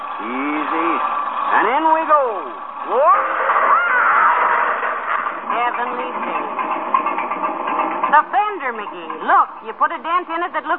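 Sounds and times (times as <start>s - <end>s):
fire truck motor running: 0.0s - 10.7s
speech: 0.2s - 3.7s, 5.5s - 6.6s, 8.1s - 10.7s.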